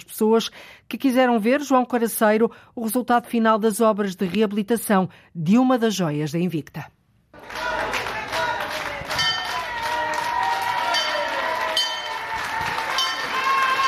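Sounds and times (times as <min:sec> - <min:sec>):
speech: 0:00.1 - 0:07.0
market vendors cheering and applauding at reopening of Bolhão market: 0:07.4 - 0:13.8.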